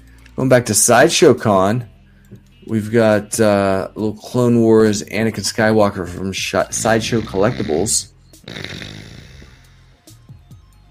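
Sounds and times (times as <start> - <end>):
speech: 0.4 - 1.9, 2.6 - 9.1
snoring snort from sleep apnea: 6.6 - 10.2
throaty catches: 6.6 - 10.2.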